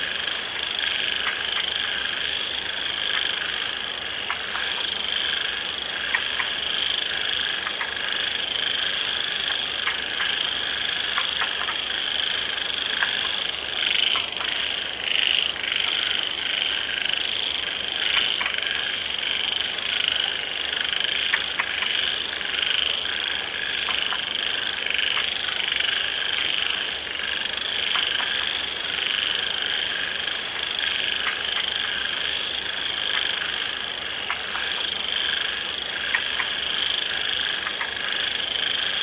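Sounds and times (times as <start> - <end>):
falling rain: 0.0 - 39.0
frog chorus trilling: 0.0 - 39.0.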